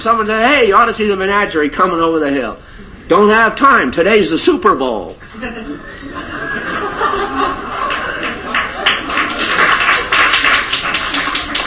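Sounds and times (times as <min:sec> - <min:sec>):
speech: 0:00.0 - 0:05.7
laughter: 0:05.3 - 0:11.6
audience applause: 0:06.8 - 0:11.6.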